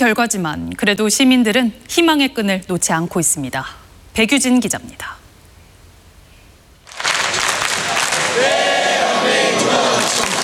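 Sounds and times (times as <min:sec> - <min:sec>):
speech: 0:00.0 - 0:05.2
football fans cheering at public viewing: 0:06.9 - 0:10.4.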